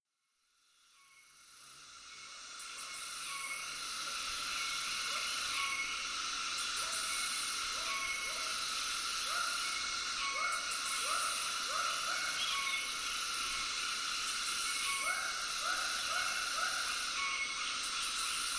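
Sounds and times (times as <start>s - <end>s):
cicadas buzzing in a continuous high drone in a tropical soundscape: 0.6s - 18.5s.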